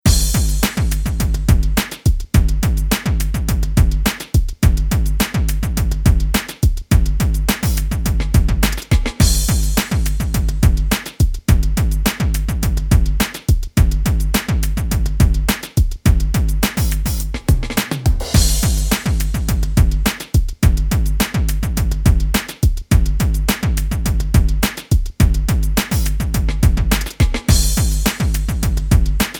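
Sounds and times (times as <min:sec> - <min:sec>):
funky discotheque bass: 0:00.1 - 0:01.8, 0:02.4 - 0:10.9, 0:11.5 - 0:13.2, 0:13.8 - 0:15.5, 0:16.1 - 0:24.6, 0:25.2 - 0:29.2.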